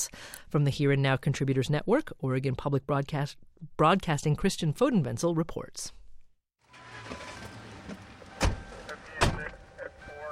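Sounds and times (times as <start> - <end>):
speech: 0.0 - 6.0
steady low police car engine hum: 6.6 - 10.2
police car door thumps: 7.8 - 9.5.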